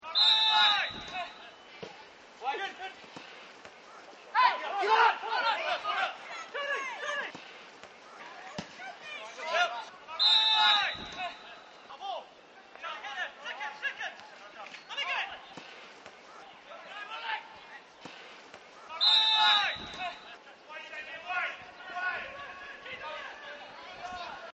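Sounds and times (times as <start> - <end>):
soccer game: 0.0 - 24.5.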